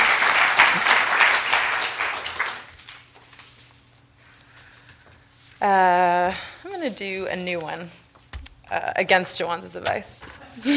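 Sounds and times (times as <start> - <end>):
audience clapping: 0.0 - 3.2
speech: 5.6 - 8.0, 8.7 - 10.7.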